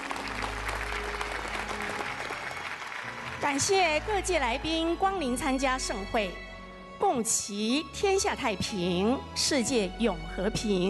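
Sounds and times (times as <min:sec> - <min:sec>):
audience applause: 0:00.0 - 0:04.0
speech: 0:03.4 - 0:06.4, 0:07.1 - 0:10.8.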